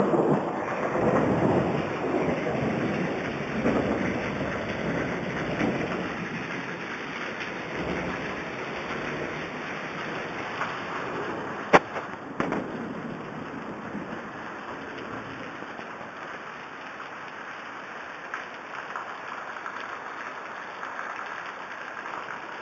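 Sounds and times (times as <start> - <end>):
thunder over Kigali: 0.0 - 15.6
rain over Kigali: 0.0 - 22.6.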